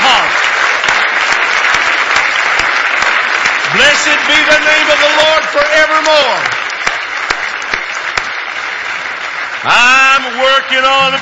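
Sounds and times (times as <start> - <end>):
congregation clapping in praise during a church service: 0.0 - 11.2
speech: 4.0 - 6.6, 9.6 - 11.2.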